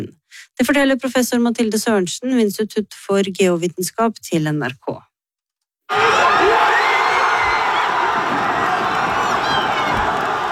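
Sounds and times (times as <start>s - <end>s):
speech: 0.0s - 5.1s
crowd cheering during World Cup match: 5.9s - 10.5s.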